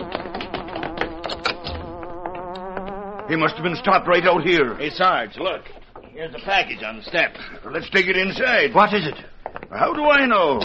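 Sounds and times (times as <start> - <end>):
hornet-like buzzing from a passing car: 0.0 - 5.1
speech: 3.3 - 10.6.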